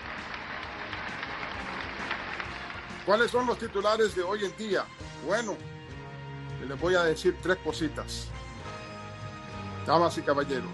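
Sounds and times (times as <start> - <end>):
studio audience applause at a sports news show: 0.0 - 4.7
speech: 3.1 - 5.8, 6.6 - 8.4, 9.9 - 10.7.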